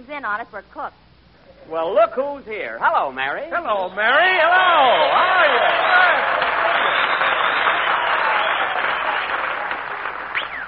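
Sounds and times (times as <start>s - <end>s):
speech: 0.0s - 6.3s
audience cheers: 4.2s - 10.6s
audience applause: 4.5s - 10.6s
audience whistles: 5.7s - 9.5s, 10.3s - 10.6s.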